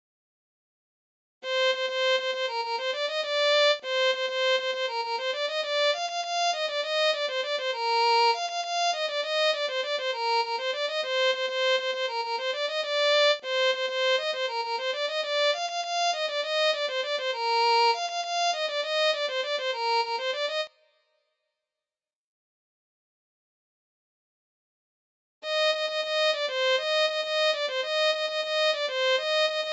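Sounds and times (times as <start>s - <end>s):
violin: 1.4s - 20.7s, 25.4s - 29.7s.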